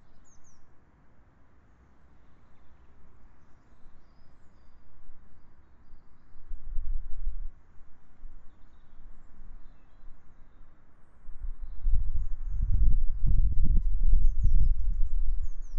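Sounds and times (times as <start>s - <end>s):
birdsong: 0.0s - 0.7s, 2.1s - 6.6s, 8.4s - 15.7s.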